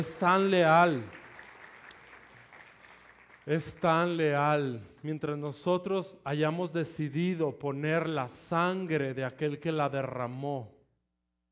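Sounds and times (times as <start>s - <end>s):
speech: 0.0s - 1.2s, 3.5s - 10.8s
audience applause: 0.0s - 4.2s.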